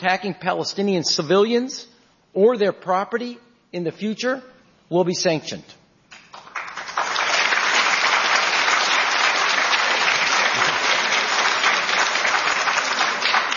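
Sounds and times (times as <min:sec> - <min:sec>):
speech: 0:00.0 - 0:05.8
audience applause: 0:06.2 - 0:13.5.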